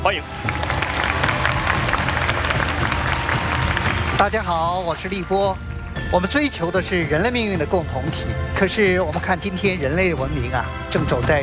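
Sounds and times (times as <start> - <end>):
speech: 0.0 - 0.7, 4.2 - 11.4
audience applause: 0.0 - 5.3.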